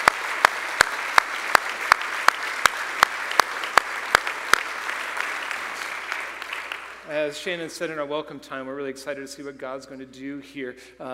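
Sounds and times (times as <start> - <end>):
audience applause: 0.0 - 7.2
speech: 7.1 - 11.1.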